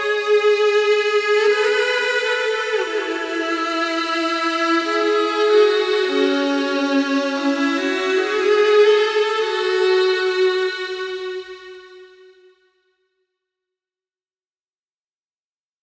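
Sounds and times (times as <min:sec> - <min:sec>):
solo violin wet variations: 0:00.0 - 0:12.5.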